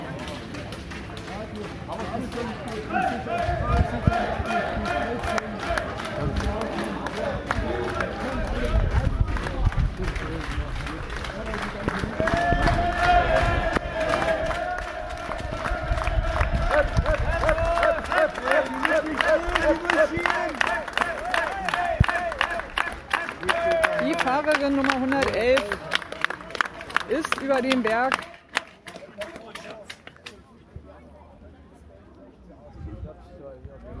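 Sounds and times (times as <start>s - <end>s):
crowd applauding and cheering: 0.2s - 30.1s.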